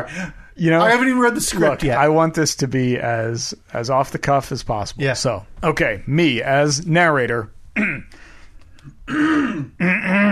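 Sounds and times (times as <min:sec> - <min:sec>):
speech: 0:00.0 - 0:08.2, 0:08.8 - 0:10.3
person clearing throat: 0:07.8 - 0:08.1, 0:09.1 - 0:10.3.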